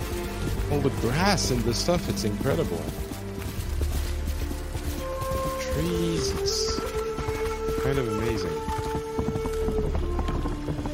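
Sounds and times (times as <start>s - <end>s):
video game horse hooves galloping through puddles with water splashing: 0.0s - 10.9s
speech: 0.7s - 3.1s, 5.8s - 6.8s, 7.9s - 8.8s.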